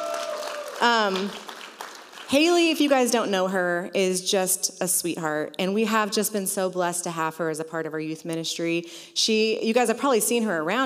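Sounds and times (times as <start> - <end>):
audience applause: 0.0 - 2.3
speech: 0.8 - 1.5, 2.3 - 10.8.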